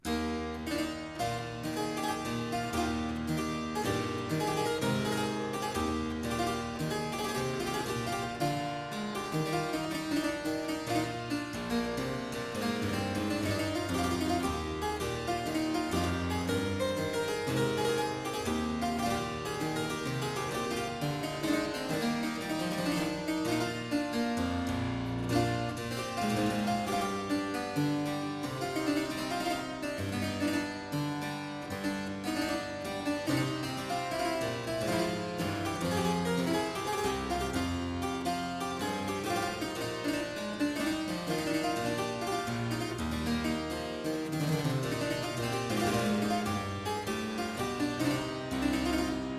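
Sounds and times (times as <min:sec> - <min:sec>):
harpsichord sarabande in F major: 0:00.0 - 0:49.3.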